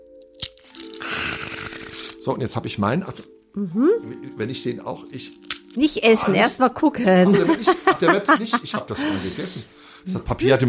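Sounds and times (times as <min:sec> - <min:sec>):
fortune cookie being snapped open: 0:00.2 - 0:02.3, 0:05.3 - 0:05.8
speech: 0:02.3 - 0:10.6
laughter: 0:07.0 - 0:09.7.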